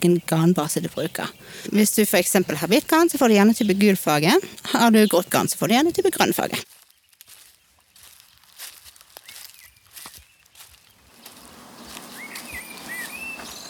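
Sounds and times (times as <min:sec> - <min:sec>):
speech: 0:00.0 - 0:06.8
birds chirping: 0:00.0 - 0:13.6
footsteps walking into a garden: 0:00.8 - 0:13.6.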